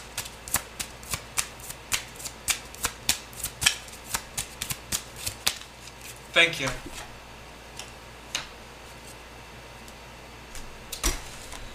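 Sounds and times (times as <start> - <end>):
tarot cards being shuffled and drawn during a reading: 0.1 - 7.1
speech: 6.4 - 7.0.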